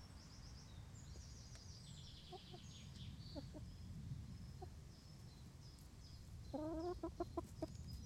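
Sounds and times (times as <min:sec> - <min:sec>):
small birds twittering: 0:00.0 - 0:08.0
chickens clucking: 0:02.3 - 0:03.7, 0:06.5 - 0:07.9.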